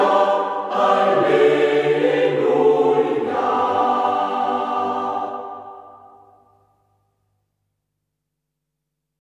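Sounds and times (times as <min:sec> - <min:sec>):
choir singing: 0:00.0 - 0:06.5.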